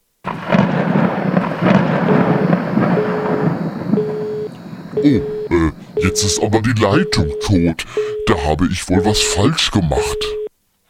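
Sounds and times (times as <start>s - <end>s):
booming thunder: 0.2s - 6.4s
faint steady tones: 2.0s - 10.6s
speech: 5.0s - 5.3s, 6.2s - 10.4s.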